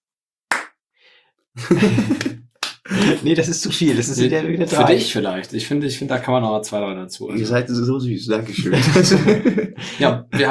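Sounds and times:
hands clapping: 0.5s - 0.7s, 1.7s - 5.1s
laughter: 1.6s - 5.4s, 8.3s - 10.4s
speech: 1.6s - 10.4s.

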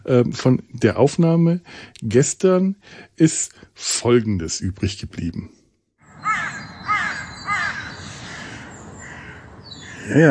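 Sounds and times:
speech: 0.1s - 5.6s, 10.1s - 10.3s
crows cawing: 6.0s - 10.3s.

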